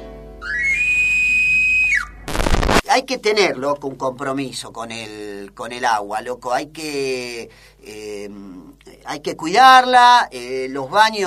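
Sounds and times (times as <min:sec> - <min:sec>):
sustained whistle tone: 0:00.4 - 0:02.3
speech: 0:03.0 - 0:11.2.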